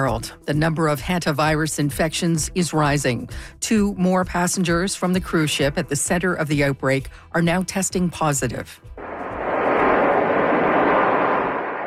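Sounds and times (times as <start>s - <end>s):
speech: 0.0s - 9.0s
plane carrying evacuated Americans landing in Omaha: 9.0s - 11.8s.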